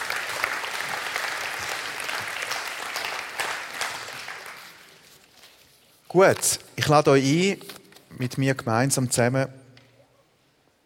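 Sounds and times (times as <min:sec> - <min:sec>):
audience applause: 0:00.0 - 0:05.0
speech: 0:06.1 - 0:09.6.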